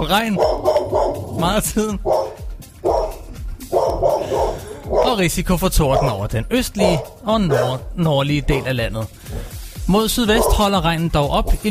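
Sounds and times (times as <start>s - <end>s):
speech: 0.0s - 2.3s, 5.0s - 9.2s, 9.9s - 11.7s
dog barking: 0.2s - 1.4s, 2.0s - 5.2s, 5.9s - 6.2s, 6.8s - 7.9s, 10.3s - 10.7s.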